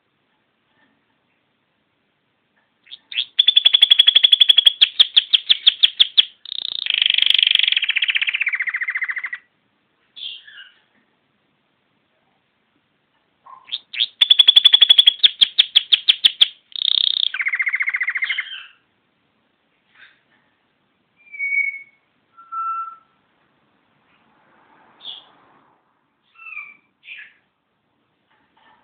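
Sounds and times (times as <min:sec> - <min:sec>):
canary song: 0:02.8 - 0:11.0, 0:13.4 - 0:19.0, 0:21.1 - 0:23.3, 0:26.2 - 0:27.6.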